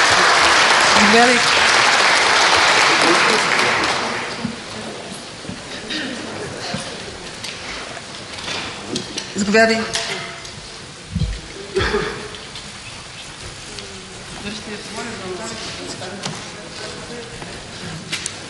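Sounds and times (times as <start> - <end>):
audience applause: 0.0 - 7.4
speech: 1.0 - 1.6, 3.3 - 3.5, 9.4 - 10.0.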